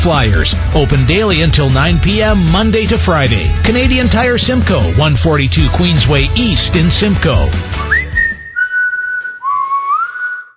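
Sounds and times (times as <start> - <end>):
speech: 0.0 - 7.8
person whistling with echo in an empty house: 7.8 - 10.5.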